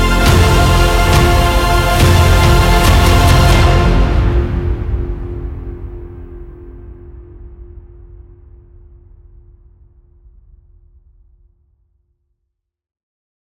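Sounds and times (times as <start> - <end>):
epic dark brooding orchestral music: 0.0 - 7.7.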